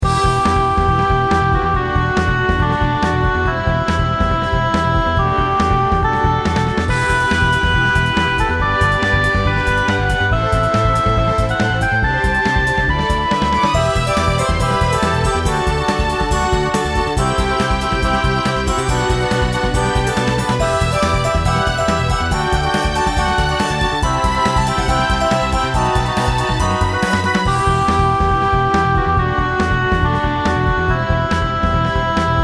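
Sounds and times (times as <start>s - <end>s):
background music: 0.0s - 32.4s.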